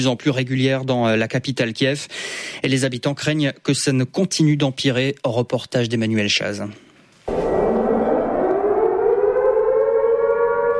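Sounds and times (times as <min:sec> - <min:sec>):
speech: 0:00.0 - 0:06.8
air raid siren in Kiev: 0:07.3 - 0:10.7.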